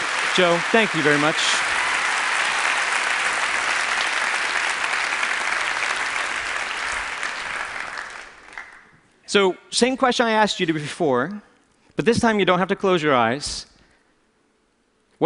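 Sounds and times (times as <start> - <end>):
audience round of applause: 0.0 - 8.9
speech: 0.4 - 1.7, 9.3 - 13.7.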